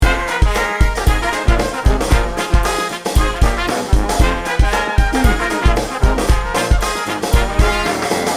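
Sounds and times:
mardi gras party music loop: 0.0s - 8.3s.

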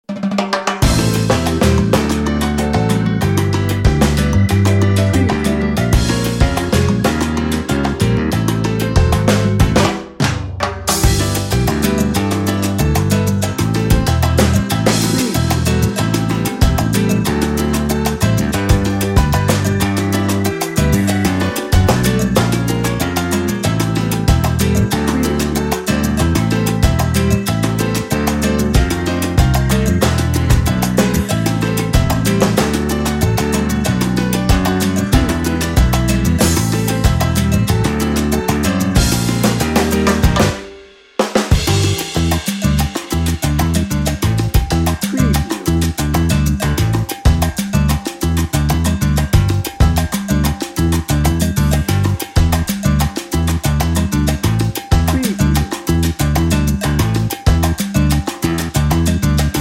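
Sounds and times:
salsa music without horns: 0.0s - 59.5s.

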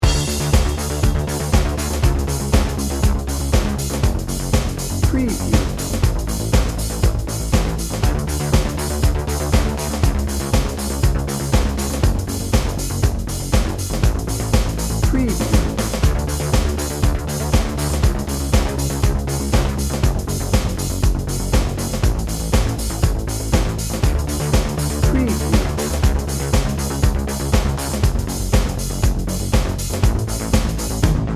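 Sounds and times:
drum and bass music: 0.0s - 31.3s.

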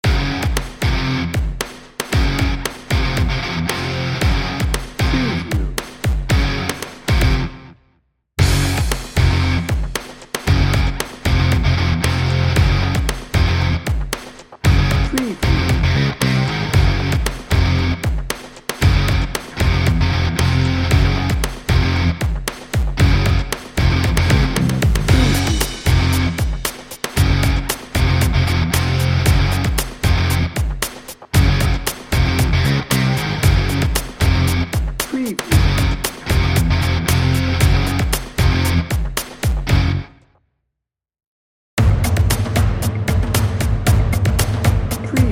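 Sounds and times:
Bollywood action hero drum and bass music: 0.0s - 7.6s, 8.4s - 40.0s, 41.8s - 45.3s.

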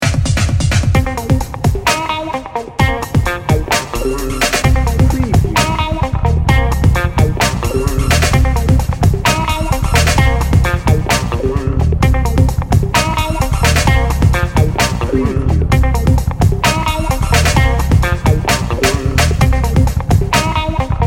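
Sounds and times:
funk music without horns: 0.0s - 21.0s.

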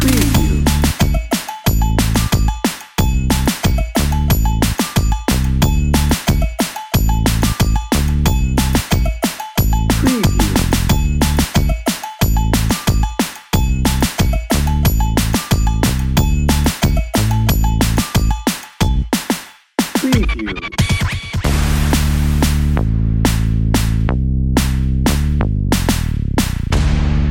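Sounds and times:
happy upbeat reggaeton drum and bass music: 0.0s - 27.2s.

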